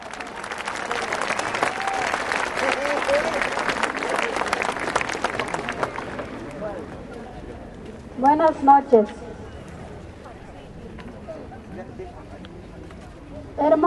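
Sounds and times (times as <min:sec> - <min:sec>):
warm audience applause: 0:00.0 - 0:06.6
speech: 0:08.5 - 0:09.2.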